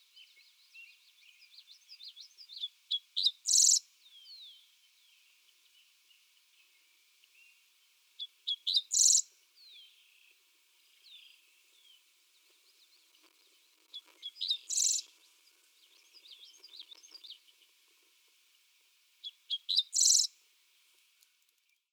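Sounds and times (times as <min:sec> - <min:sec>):
Dickcissel singing: 0:00.1 - 0:05.8, 0:08.2 - 0:17.8, 0:19.2 - 0:20.3.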